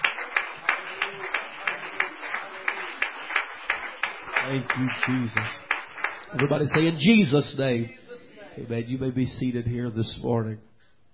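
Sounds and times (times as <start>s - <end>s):
audience clapping hands: 0.0s - 7.6s
speech: 4.5s - 5.6s, 6.3s - 8.0s, 8.6s - 10.7s.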